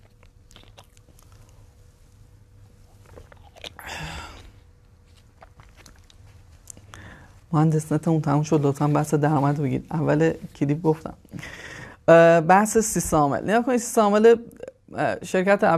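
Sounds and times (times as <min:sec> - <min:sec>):
person drinking water: 0:00.0 - 0:01.8, 0:02.8 - 0:07.2
speech: 0:07.5 - 0:15.7.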